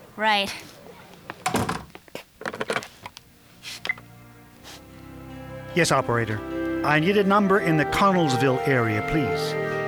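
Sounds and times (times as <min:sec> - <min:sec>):
speech: 0:00.2 - 0:00.8, 0:05.8 - 0:09.7
door being pushed shut: 0:01.4 - 0:02.0.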